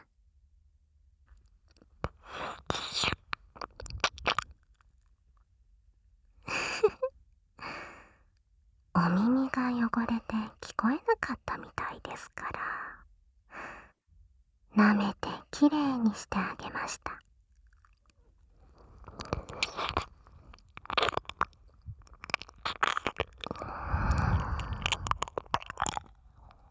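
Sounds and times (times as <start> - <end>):
ear licking ASMR sounds: 2.1 - 4.7, 17.6 - 26.6
person whispering ASMR: 9.1 - 12.9, 14.8 - 17.2, 22.7 - 26.6.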